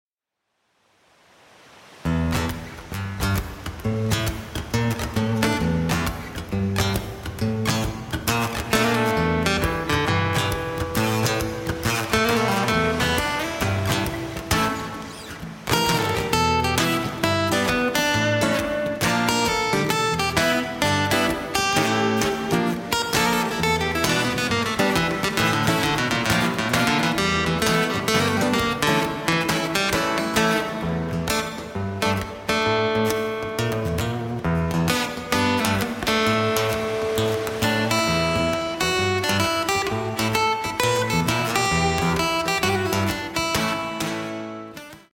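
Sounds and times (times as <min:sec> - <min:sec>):
guitar: 0:01.6 - 0:45.1.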